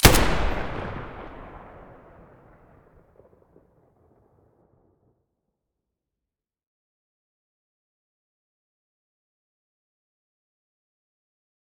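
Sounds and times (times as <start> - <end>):
Galil rifle muzzle blast: 0.0 - 2.0.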